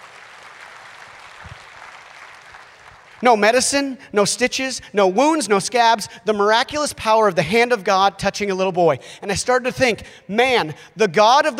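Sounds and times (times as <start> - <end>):
audience clapping: 0.0 - 3.5
speech: 3.2 - 11.5.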